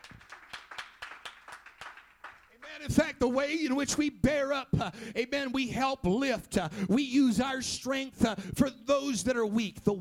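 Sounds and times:
crowd applause: 0.0 - 2.6
audience clapping hands in a rhythmic beat: 0.0 - 2.7
speech: 2.8 - 9.9.

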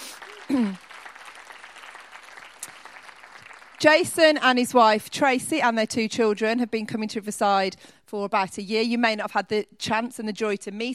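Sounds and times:
audience applause welcoming a guest: 0.0 - 4.4
speech: 0.5 - 0.8, 3.8 - 10.9.

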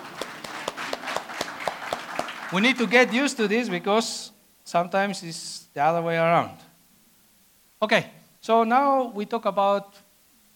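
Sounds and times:
audience clapping: 0.0 - 4.0
speech: 2.5 - 6.6, 7.8 - 10.0.

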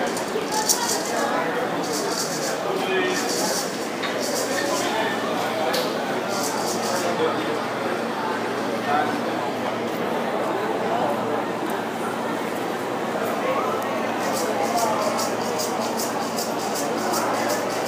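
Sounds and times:
rapid ticking clatter: 0.0 - 5.1, 6.3 - 7.1, 14.2 - 17.8
crowd murmuring along Calle Obispo in Havana: 0.0 - 17.8.

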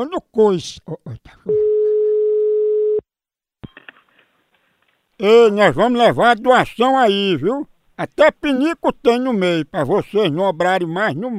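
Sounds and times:
speech: 0.0 - 1.4, 5.2 - 11.3
telephone busy signal on a failed call: 1.5 - 3.0.

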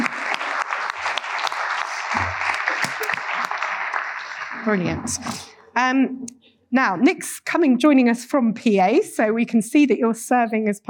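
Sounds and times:
church audience applause welcoming a speaker: 0.0 - 5.5
speech: 4.7 - 10.8.

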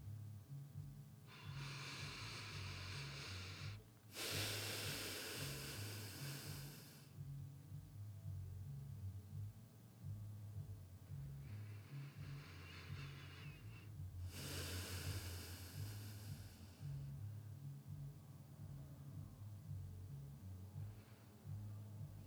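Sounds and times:
faint low hum: 0.0 - 22.2
slow deep breath during a guided relaxation exercise: 1.3 - 7.2, 11.4 - 17.2.

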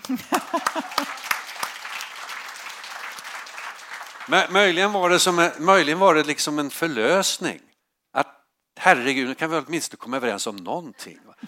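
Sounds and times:
laughter: 0.0 - 1.2
applause: 0.0 - 6.5
speech: 0.1 - 1.1, 4.3 - 11.4.

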